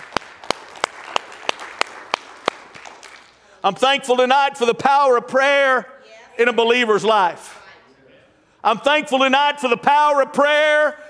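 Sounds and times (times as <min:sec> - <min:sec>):
audience applause, hand clapping: 0:00.0 - 0:03.4
speech: 0:03.6 - 0:07.5, 0:08.6 - 0:11.0.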